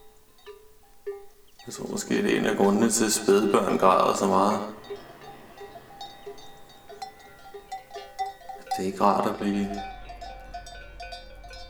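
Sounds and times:
sheep bells clinking: 0.0 - 11.6
speech: 1.6 - 5.0, 8.8 - 9.9
laughter: 1.7 - 11.6.

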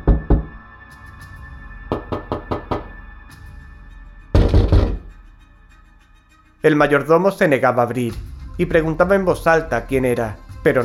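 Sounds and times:
fist knocking on a door: 0.0 - 0.6, 1.9 - 2.9, 4.4 - 5.1
speech: 6.6 - 10.8.

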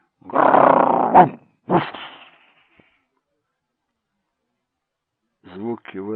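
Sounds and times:
man in a dog costume imitating a dog's growl, muffled through the costume's dog mouth: 0.2 - 2.2.

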